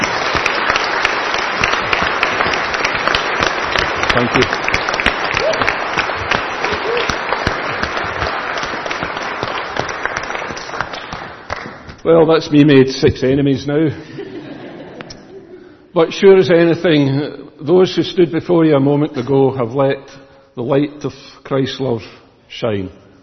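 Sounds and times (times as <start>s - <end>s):
audience round of applause: 0.0s - 12.0s
speech: 4.2s - 4.6s, 12.1s - 14.2s, 15.9s - 23.0s
laughter: 14.0s - 15.7s.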